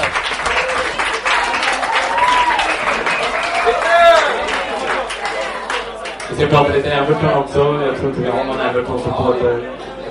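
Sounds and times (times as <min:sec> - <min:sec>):
audience applause: 0:00.0 - 0:06.4
speech: 0:06.4 - 0:09.9.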